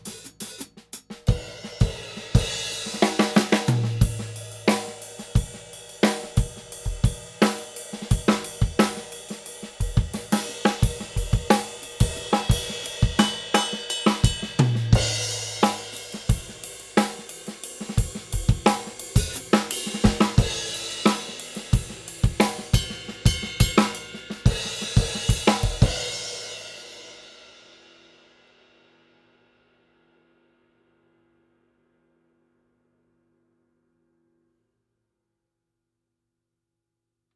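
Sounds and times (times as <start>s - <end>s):
Meinl M Series cymbals: 0.0s - 28.0s.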